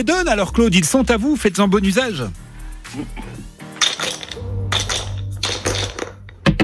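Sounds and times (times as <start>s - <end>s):
speech: 0.0s - 3.5s
dice being rolled on a game board: 3.8s - 6.3s.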